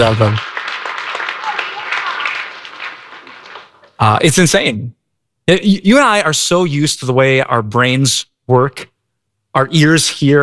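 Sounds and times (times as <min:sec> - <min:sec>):
speech: 0:00.0 - 0:00.5, 0:04.0 - 0:08.9, 0:09.5 - 0:10.4
crowd applauding: 0:00.0 - 0:04.0.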